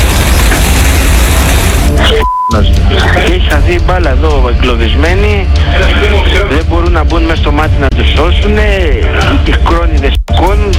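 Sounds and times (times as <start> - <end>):
gas cylinders exploding in wildfire: 0.0 - 2.0
speech: 2.5 - 10.7.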